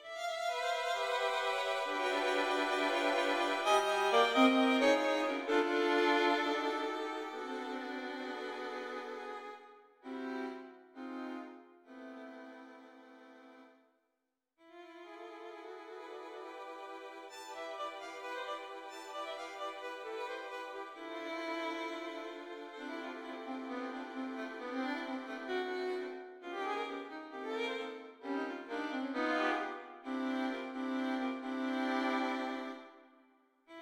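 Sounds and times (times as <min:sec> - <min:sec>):
four violins playing a concertante: 0:00.1 - 0:09.5, 0:15.2 - 0:32.8.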